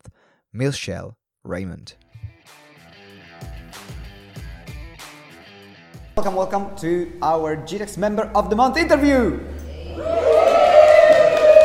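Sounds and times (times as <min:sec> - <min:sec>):
speech: 0:00.5 - 0:02.6, 0:06.2 - 0:10.1
few voices cheering: 0:09.0 - 0:11.6.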